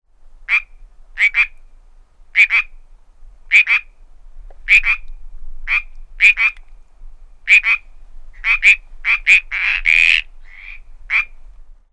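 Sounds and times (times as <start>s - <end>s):
group of frogs croaking: 0.5s - 1.7s, 2.3s - 2.8s, 3.5s - 4.0s, 4.6s - 6.7s, 7.4s - 11.4s.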